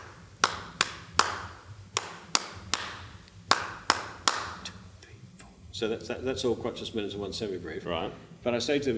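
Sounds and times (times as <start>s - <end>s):
rhythmic hand claps: 0.0s - 6.2s
speech: 5.8s - 8.9s.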